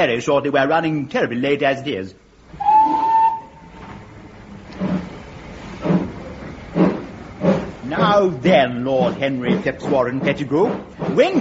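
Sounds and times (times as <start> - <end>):
speech: 0.0 - 3.0, 8.2 - 11.3
steam train whistle: 2.6 - 3.8
steam train engine chuffing: 4.7 - 11.3.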